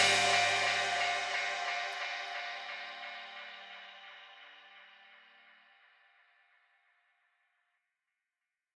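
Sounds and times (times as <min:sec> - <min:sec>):
dub music: 0:00.0 - 0:03.4.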